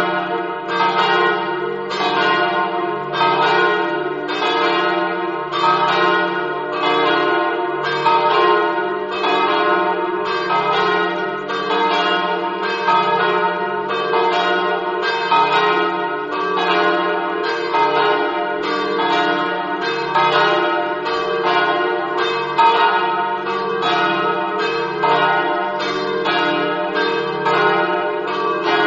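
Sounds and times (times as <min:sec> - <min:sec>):
church bells ringing: 0:00.0 - 0:28.8.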